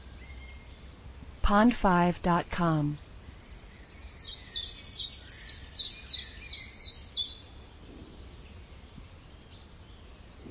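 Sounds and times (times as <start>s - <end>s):
speech: 1.5s - 3.0s
high clipped bird chirps: 3.0s - 7.5s.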